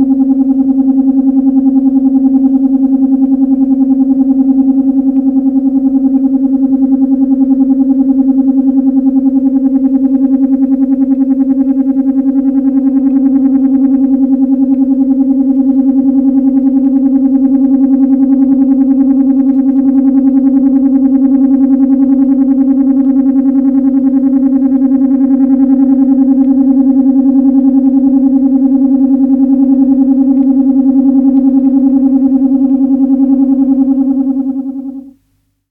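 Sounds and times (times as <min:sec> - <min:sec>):
warble tone at about 480 Hz: 0:00.1 - 0:35.1.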